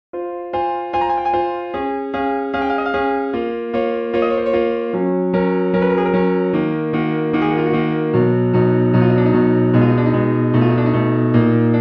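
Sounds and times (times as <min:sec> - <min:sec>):
keyboard piece in meantone tuning: 0:00.2 - 0:11.7.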